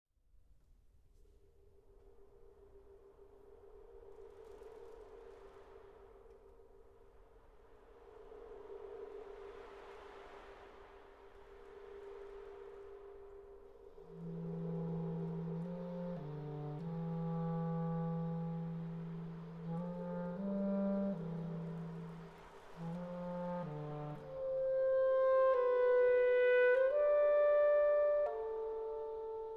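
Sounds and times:
clarinet concerto: 13.9s - 29.5s.

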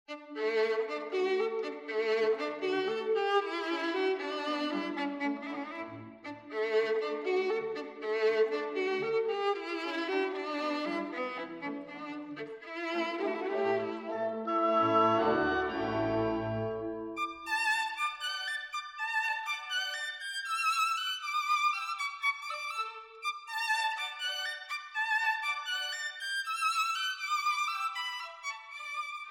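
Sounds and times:
violin concerto: 0.1s - 29.2s.

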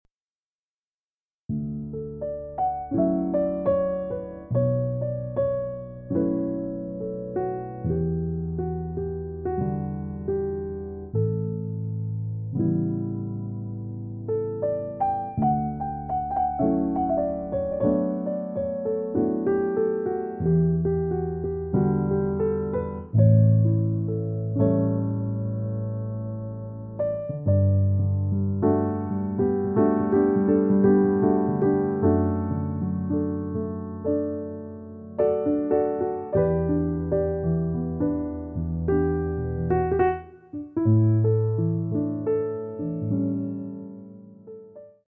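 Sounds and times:
piano: 1.5s - 45.0s.

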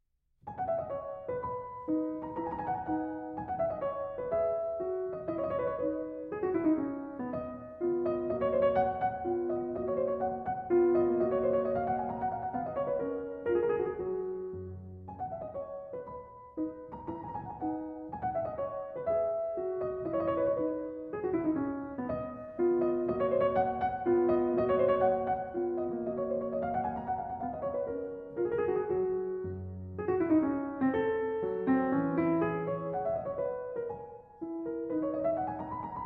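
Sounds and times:
piano sonata minuet in B minor: 0.4s - 36.0s.

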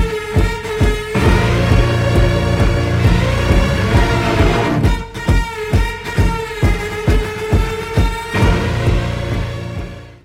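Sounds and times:
electric powwow drum music: 0.0s - 10.2s.

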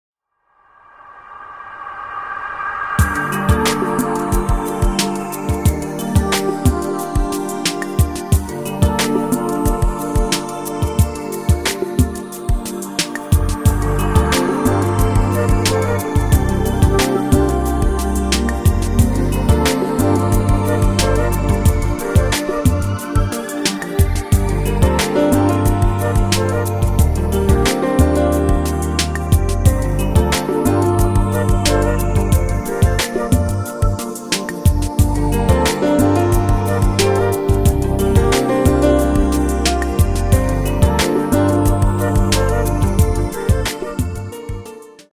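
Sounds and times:
jazz music: 3.0s - 44.6s.

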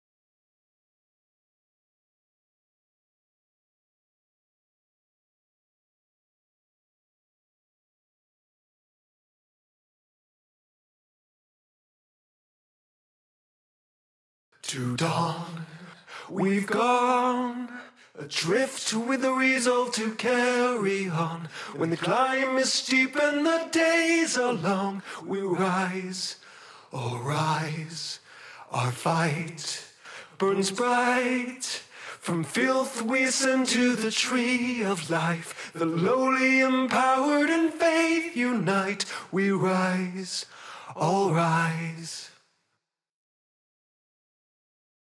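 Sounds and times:
vocal stem: 14.6s - 42.5s.

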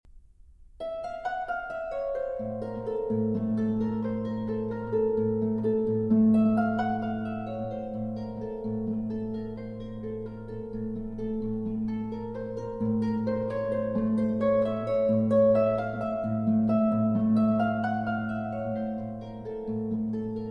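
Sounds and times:
flute and harp suite: 0.8s - 20.4s.

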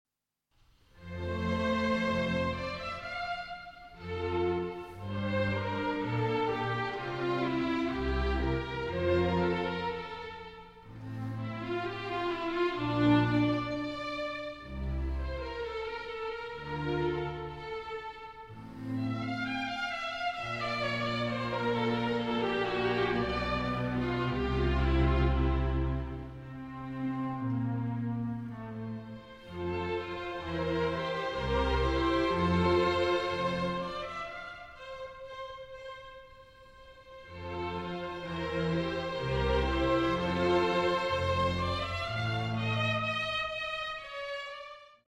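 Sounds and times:
cello concerto adagio movement: 1.0s - 44.9s.

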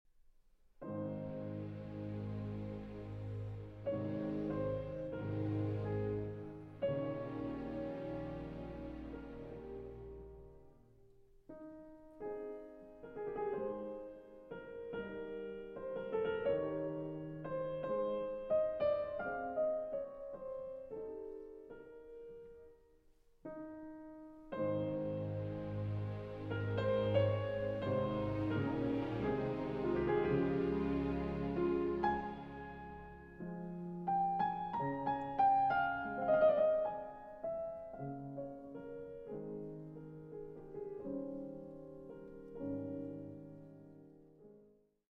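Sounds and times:
piano concerto in C major: 0.8s - 44.7s.

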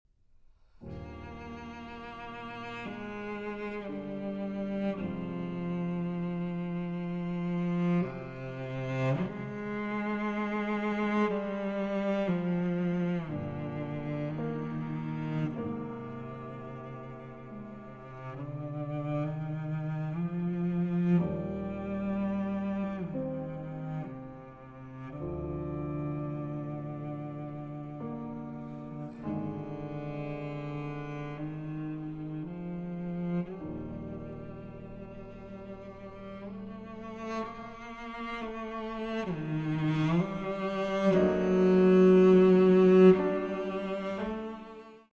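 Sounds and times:
cello sonata: 0.3s - 45.1s.

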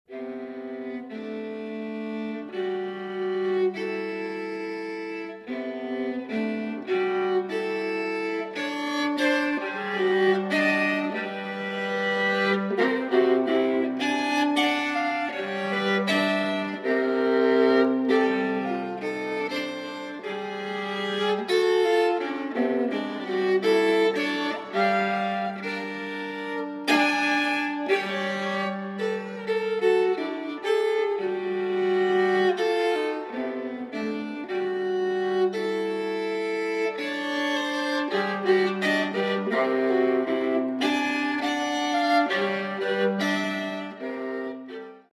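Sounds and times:
solo viola sonata: 0.0s - 45.1s.

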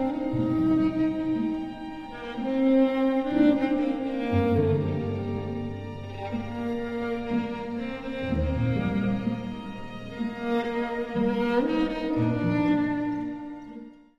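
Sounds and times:
solo violin: 0.0s - 14.1s
strings: 0.0s - 14.1s.

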